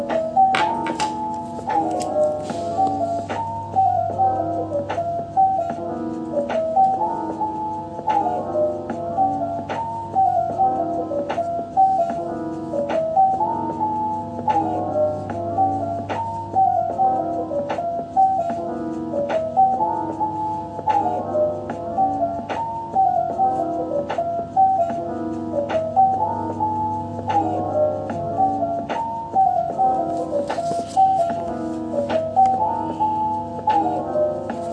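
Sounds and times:
background music with plucked notes over soft bass: 0.0 - 34.7
scratchy scribbling: 0.8 - 3.4, 30.0 - 32.2.

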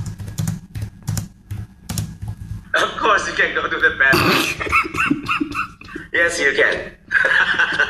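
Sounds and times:
keystrokes on a computer keyboard as a student types during an online class: 0.0 - 2.6
speech: 3.0 - 5.5, 6.2 - 7.8
laughter: 7.1 - 7.8.

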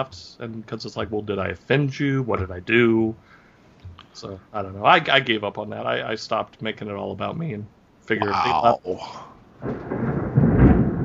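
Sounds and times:
speech: 0.0 - 3.4, 4.2 - 10.0
faint rain hiss: 0.0 - 11.0
thunder clap during thunderstorm: 9.6 - 11.0.

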